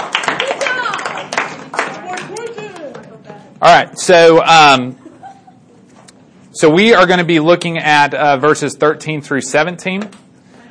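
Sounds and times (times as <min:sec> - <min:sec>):
audience applause: 0:00.0 - 0:03.0
speech: 0:03.6 - 0:05.0, 0:06.6 - 0:10.2.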